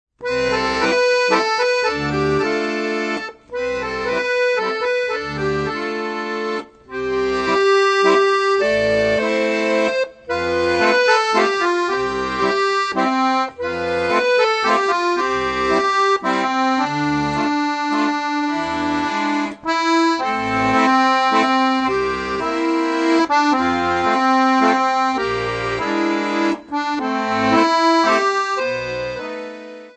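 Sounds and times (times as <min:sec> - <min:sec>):
accordion: 0:00.2 - 0:29.9.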